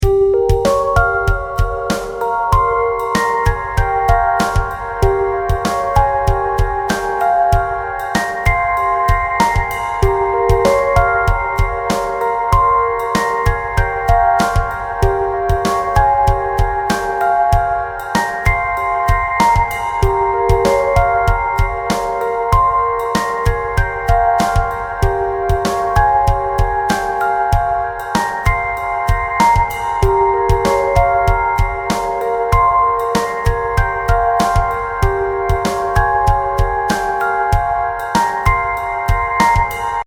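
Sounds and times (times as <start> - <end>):
music beat: 0.0 - 40.0.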